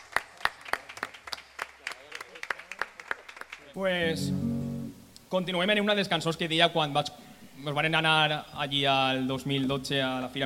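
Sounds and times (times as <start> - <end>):
small audience hand claps: 0.0 - 3.6
speech: 3.8 - 4.6, 5.3 - 10.4.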